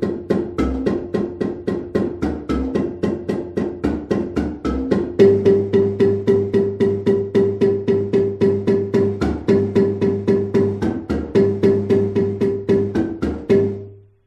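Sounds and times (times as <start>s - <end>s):
marimba bass intro: 0.2s - 14.0s.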